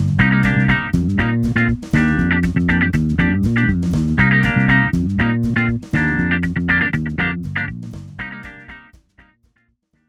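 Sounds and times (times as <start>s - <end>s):
intro music: 0.2s - 8.9s.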